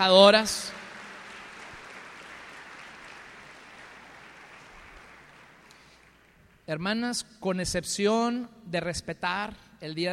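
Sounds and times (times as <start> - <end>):
speech: 0.0 - 0.8, 6.7 - 10.1
audience applause: 0.8 - 6.7.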